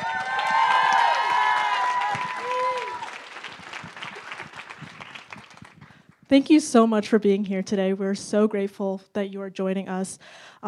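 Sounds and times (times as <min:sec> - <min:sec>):
crowd cheering and whooping: 0:00.0 - 0:05.6
audience applause welcoming guests: 0:00.0 - 0:06.0
speech: 0:06.3 - 0:10.6.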